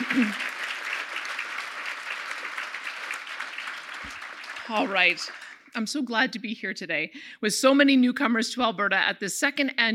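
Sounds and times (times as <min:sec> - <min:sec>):
audience applause: 0:00.0 - 0:05.8
speech: 0:00.2 - 0:00.5, 0:04.7 - 0:09.9.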